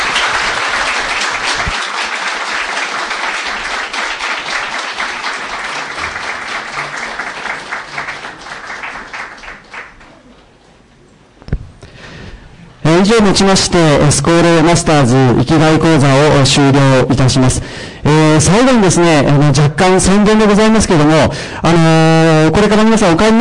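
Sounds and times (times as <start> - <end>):
audience applause: 0.0 - 10.2
speech: 13.1 - 23.4.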